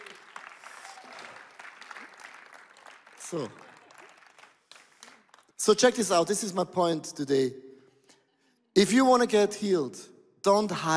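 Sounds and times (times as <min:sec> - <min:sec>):
audience clapping: 0:00.0 - 0:06.1
speech: 0:03.3 - 0:03.6, 0:05.6 - 0:07.6, 0:08.8 - 0:10.9.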